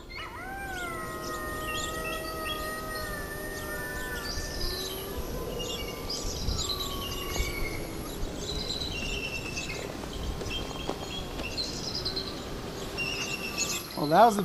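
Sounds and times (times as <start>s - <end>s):
recorded wolf howl played from phone: 0.0s - 9.3s
scattered bird chirps: 0.0s - 14.4s
wind noise: 0.0s - 14.4s.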